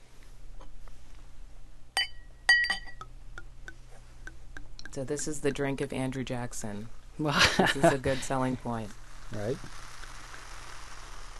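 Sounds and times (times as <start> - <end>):
low steady hum: 0.0 - 11.3
glass clinks while champagne is poured: 2.0 - 3.1
speech: 5.0 - 9.8
champagne fizz crackling: 7.4 - 11.3.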